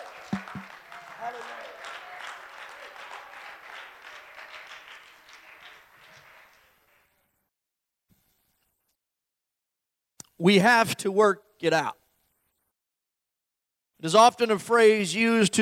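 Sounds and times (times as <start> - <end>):
audience cheering: 0.0 - 6.6
audience clapping: 0.0 - 7.4
speech: 10.4 - 12.0, 14.0 - 15.6.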